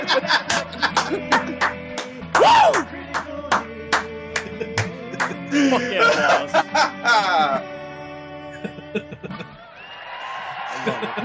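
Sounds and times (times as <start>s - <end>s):
laughter: 0.0s - 2.9s, 4.4s - 7.7s, 8.5s - 11.2s
applause: 0.5s - 4.5s, 9.8s - 11.2s.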